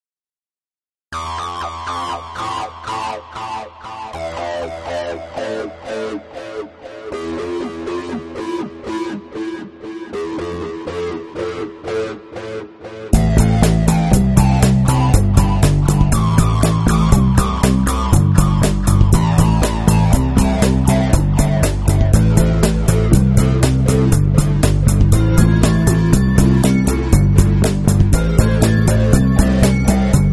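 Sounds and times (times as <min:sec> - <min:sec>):
metal music: 0:01.1 - 0:30.3.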